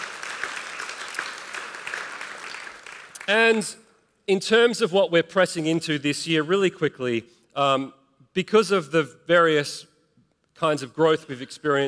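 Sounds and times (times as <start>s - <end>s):
church audience applause: 0.0s - 3.6s
speech: 3.3s - 9.9s, 10.6s - 11.8s.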